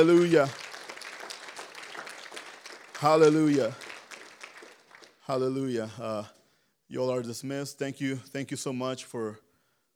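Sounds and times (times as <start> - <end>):
speech: 0.0 - 0.6, 3.0 - 3.8, 5.3 - 9.4
audience clapping hands: 0.0 - 6.1.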